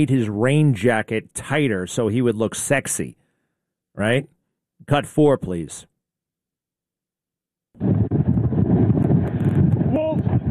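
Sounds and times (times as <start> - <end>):
speech: 0.0 - 3.2, 4.0 - 5.9, 7.8 - 8.0
strong storm wind buffeting the microphone: 7.8 - 10.5.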